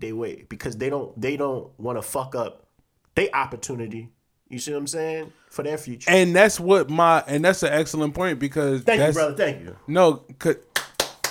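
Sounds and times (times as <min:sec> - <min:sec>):
speech: 0:00.0 - 0:02.6, 0:03.2 - 0:10.7
round of applause: 0:10.7 - 0:11.2.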